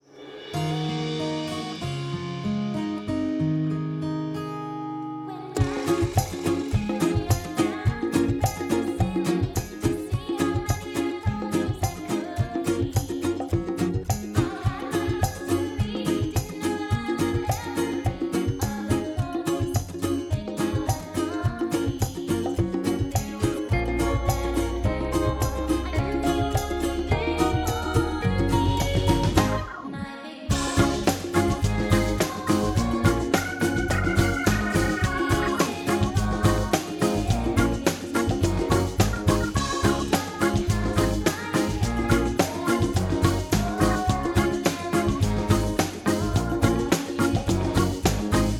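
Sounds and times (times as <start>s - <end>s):
instrumental music: 0.0s - 48.5s.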